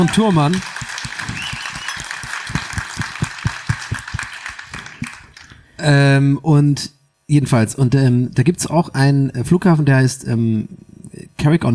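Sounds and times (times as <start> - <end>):
speech: 0.0 - 0.7, 5.8 - 11.7
audience applause: 0.0 - 5.5.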